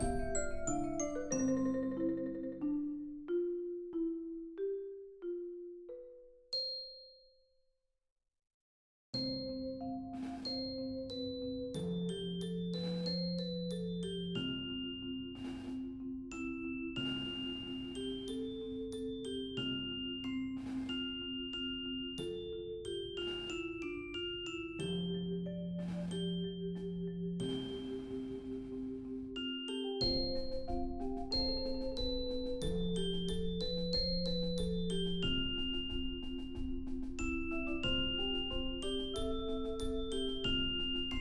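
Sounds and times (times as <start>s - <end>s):
timpani in a percussion ensemble: 0.0s - 2.5s, 17.0s - 18.6s, 20.4s - 21.3s, 25.8s - 29.4s, 30.0s - 41.1s
2 marimbas in a percussion ensemble: 0.0s - 7.3s, 9.2s - 41.1s
vibraphone in a percussion ensemble: 0.0s - 7.5s, 9.2s - 41.1s
xylophone in a percussion ensemble: 0.0s - 7.5s, 9.2s - 41.1s
bells in a percussion ensemble: 0.0s - 7.6s, 9.2s - 41.1s
snare drum in a percussion ensemble: 15.4s - 15.9s, 17.0s - 18.3s, 20.6s - 21.1s, 23.2s - 23.7s, 25.8s - 26.4s, 27.4s - 28.8s, 30.0s - 41.1s.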